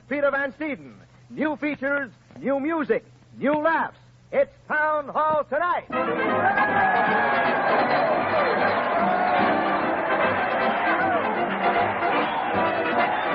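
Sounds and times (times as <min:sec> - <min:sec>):
speech: 0:00.1 - 0:08.1
large crowd cheering: 0:05.9 - 0:13.3.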